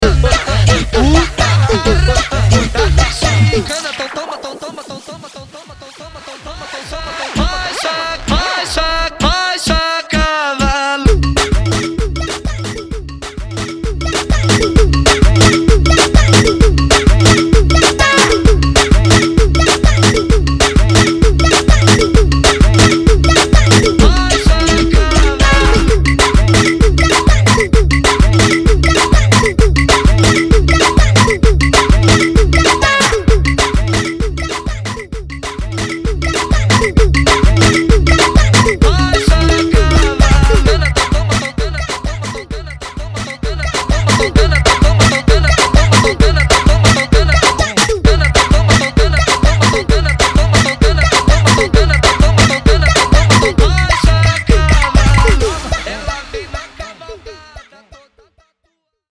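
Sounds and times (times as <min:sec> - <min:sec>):
bootleg remix at 130 BPM: 0:00.0 - 0:57.5.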